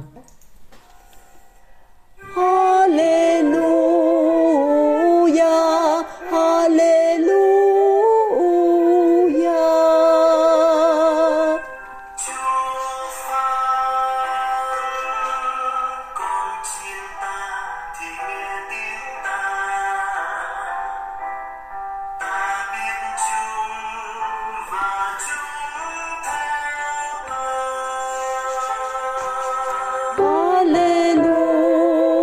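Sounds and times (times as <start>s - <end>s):
music: 0.8s - 32.2s.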